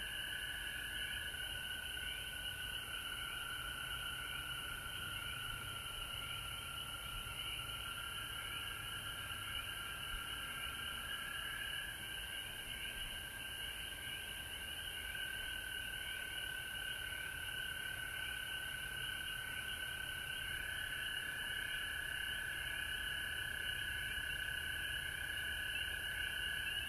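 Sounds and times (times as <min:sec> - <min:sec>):
frog chorus: 0:00.0 - 0:26.8.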